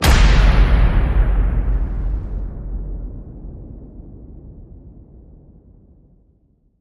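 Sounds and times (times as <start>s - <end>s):
big hit: 0.0s - 6.0s.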